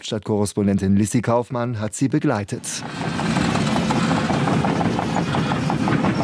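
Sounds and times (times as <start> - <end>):
speech: 0.0 - 3.4
excavator tracks clanking: 2.8 - 6.2.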